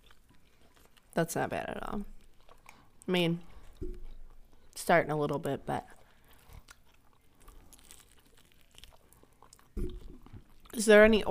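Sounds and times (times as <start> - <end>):
person chewing a chicken wing: 0.0 - 4.8, 5.7 - 11.2
speech: 1.2 - 2.2, 3.1 - 4.0, 4.8 - 6.0, 10.8 - 11.2.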